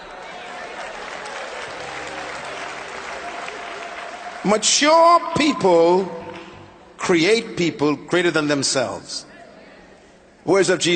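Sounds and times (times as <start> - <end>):
audience clapping: 0.0 - 6.7
speech: 4.4 - 6.2, 7.0 - 9.3, 10.4 - 10.9.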